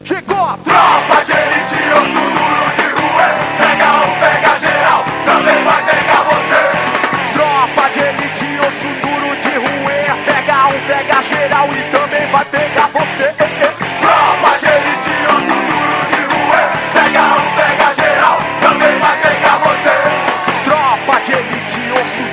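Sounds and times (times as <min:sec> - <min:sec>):
tropa music loop: 0:00.2 - 0:22.3.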